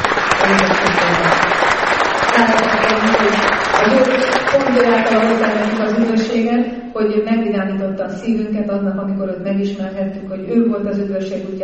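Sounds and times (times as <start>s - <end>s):
audience clapping: 0.0s - 6.2s
speech: 6.6s - 11.6s.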